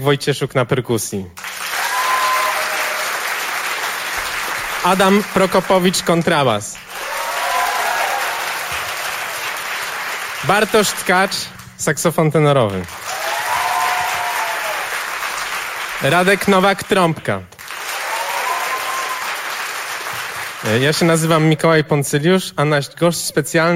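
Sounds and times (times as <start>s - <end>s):
speech: 0.0s - 1.5s, 4.8s - 6.9s, 10.4s - 13.0s, 16.0s - 17.6s, 20.7s - 23.7s
audience applause: 1.4s - 11.7s, 12.8s - 16.8s, 17.6s - 21.4s.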